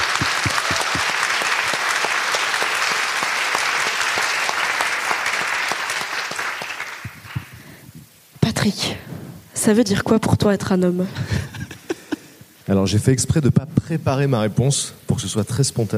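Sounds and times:
audience applause: 0.0s - 7.6s
speech: 9.6s - 11.4s, 12.7s - 15.9s.

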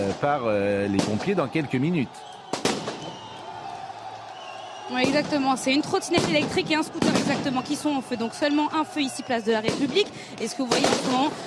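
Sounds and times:
speech: 0.1s - 2.4s, 4.9s - 11.4s
firework bangs: 0.9s - 1.5s, 2.4s - 3.4s, 4.9s - 8.3s, 9.4s - 11.4s.

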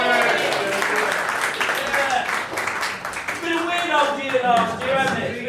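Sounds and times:
crowd voices and cheers: 0.0s - 1.2s
audience applause: 0.0s - 5.3s.

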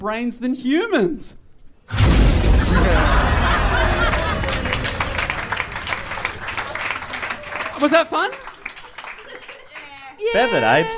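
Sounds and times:
speech: 0.0s - 3.2s, 7.8s - 8.5s, 10.3s - 10.9s
explosion: 1.9s - 6.6s
laughter: 2.6s - 10.9s.

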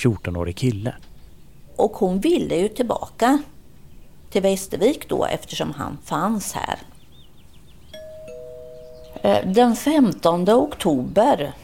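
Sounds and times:
speech: 0.0s - 1.1s, 1.8s - 3.5s, 4.3s - 6.9s, 9.2s - 11.6s
doorbell ding-dong: 8.0s - 9.5s.

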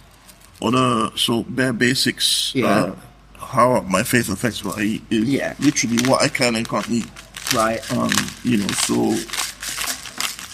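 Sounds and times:
speech: 0.6s - 9.4s
pepper being ground in a mill: 5.6s - 10.5s.

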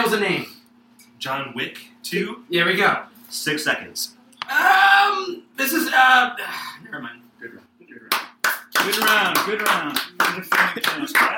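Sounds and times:
speech: 0.1s - 0.6s, 1.2s - 8.2s, 8.8s - 11.3s
hand clapping: 8.1s - 11.3s.

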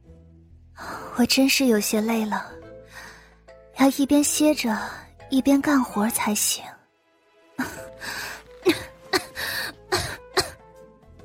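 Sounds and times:
speech: 0.8s - 2.6s, 3.8s - 6.8s, 7.6s - 8.9s
weak coughing: 8.6s - 10.6s.

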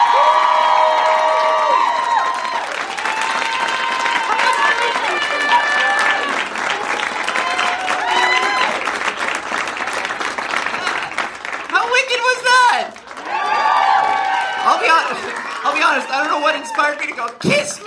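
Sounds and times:
high-pitched cheers, whoops and shouts: 0.0s - 9.1s, 12.7s - 17.0s
crowd applause: 0.0s - 17.5s.

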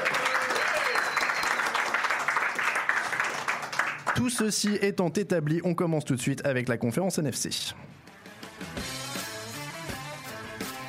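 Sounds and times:
audience applause: 0.0s - 4.8s
speech: 4.2s - 8.0s.

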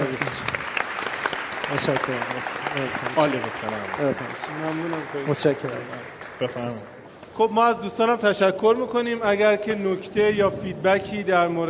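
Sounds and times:
crowd applauding: 0.0s - 6.9s
speech: 1.7s - 11.6s.

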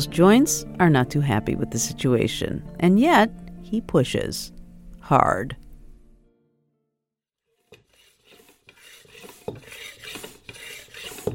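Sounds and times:
speech: 0.0s - 5.6s
hum: 3.3s - 6.3s
racing bike tire being pumped up: 7.5s - 11.3s.

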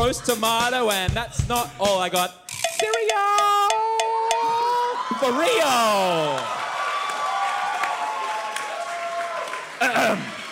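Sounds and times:
speech: 0.0s - 3.6s, 5.2s - 6.6s, 9.8s - 10.3s
audience cheering and applause: 3.2s - 10.4s.

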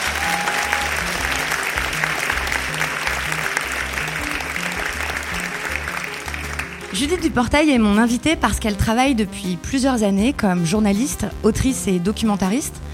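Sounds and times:
audience applause: 0.0s - 7.2s
speech: 7.0s - 12.9s.

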